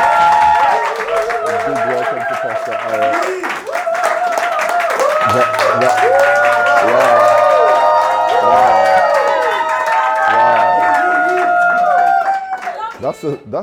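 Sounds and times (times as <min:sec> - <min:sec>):
whoops and cheering voices: 0:00.0 - 0:13.0
laughter: 0:00.0 - 0:13.4
audience applause: 0:00.0 - 0:13.5.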